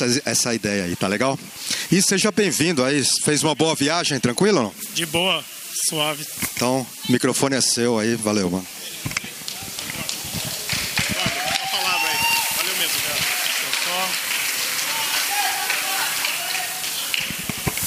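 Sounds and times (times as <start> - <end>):
speech: 0.0 - 9.2
crowd voices and cheers: 9.2 - 17.8
audience applauding: 9.4 - 17.8.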